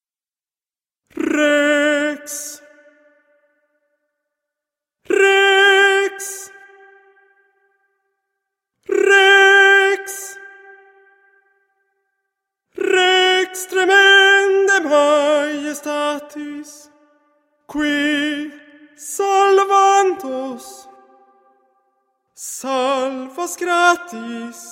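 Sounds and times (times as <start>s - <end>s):
tenor singing: 1.1s - 3.4s, 5.1s - 7.4s, 8.8s - 11.4s, 12.8s - 17.0s, 17.7s - 21.2s, 22.4s - 24.7s.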